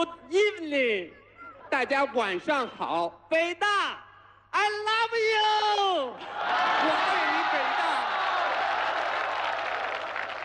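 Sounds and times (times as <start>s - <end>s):
speech: 0.0s - 7.9s
audience applause at a Peking University evening event: 6.3s - 10.4s.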